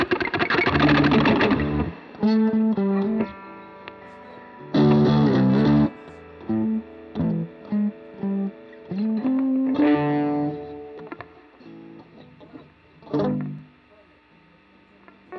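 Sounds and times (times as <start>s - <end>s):
guitars: 0.0s - 15.3s.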